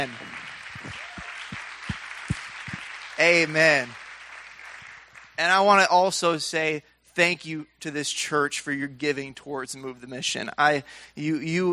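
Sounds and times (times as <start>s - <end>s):
speech: 0.0s - 0.3s, 3.2s - 4.0s, 5.4s - 11.7s
church congregation applauding its young people during a morning service: 0.0s - 6.2s.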